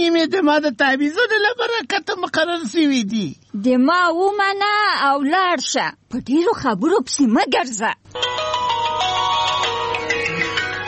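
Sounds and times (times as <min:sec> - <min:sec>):
speech: 0:00.0 - 0:08.4
mobile phone ringtone with bright electronic melody: 0:08.1 - 0:10.8.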